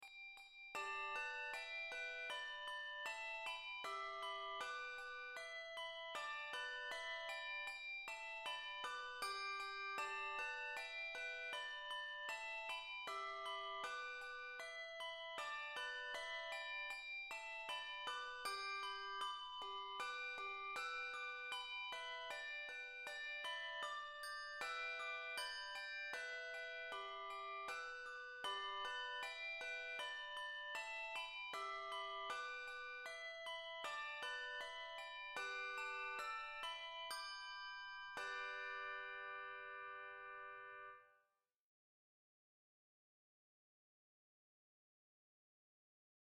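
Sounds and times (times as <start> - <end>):
two-octave handbells ringing: 0.0 - 41.0.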